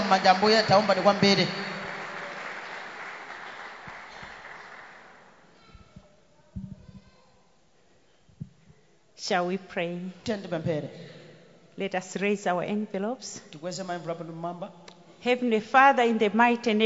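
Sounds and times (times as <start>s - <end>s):
audience clapping: 0.0s - 5.6s
speech: 0.1s - 1.8s, 9.2s - 11.2s, 11.8s - 16.8s.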